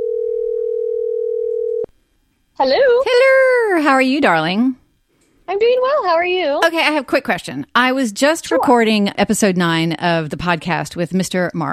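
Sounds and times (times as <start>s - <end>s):
telephone dial tone when placing a call: 0.0s - 1.9s
speech: 2.6s - 4.8s, 5.5s - 11.7s.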